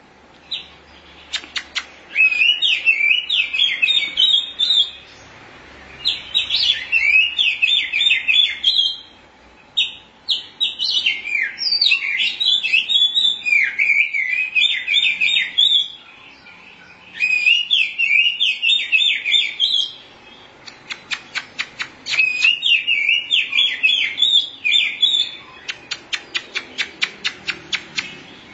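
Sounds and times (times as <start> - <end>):
Oriental magpie-robin warbling song: 0.4 - 28.5.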